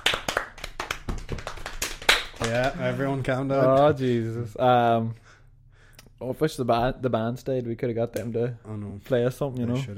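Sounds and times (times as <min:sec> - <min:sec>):
round of applause in the studio: 0:00.0 - 0:02.8
speech: 0:02.4 - 0:05.2, 0:06.2 - 0:09.9.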